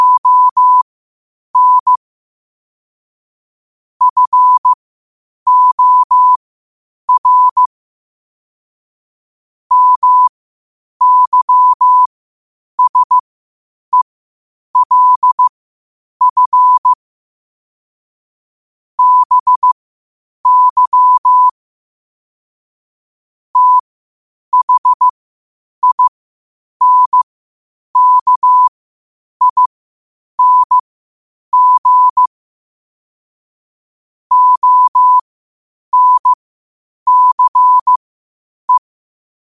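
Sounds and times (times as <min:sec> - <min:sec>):
morse code at 5 wpm: 0:00.0 - 0:00.8, 0:01.6 - 0:02.0, 0:04.0 - 0:04.8, 0:05.5 - 0:06.4, 0:07.1 - 0:07.7, 0:09.7 - 0:10.3, 0:11.0 - 0:12.1, 0:12.8 - 0:13.2, 0:14.8 - 0:15.5, 0:16.2 - 0:17.0, 0:19.0 - 0:19.8, 0:20.4 - 0:21.6, 0:23.6 - 0:23.8, 0:24.5 - 0:25.1, 0:25.8 - 0:26.1, 0:26.8 - 0:27.2, 0:28.0 - 0:28.7, 0:29.4 - 0:29.8, 0:30.4 - 0:30.8, 0:31.5 - 0:32.4, 0:34.3 - 0:35.3, 0:35.9 - 0:36.4, 0:37.1 - 0:38.0.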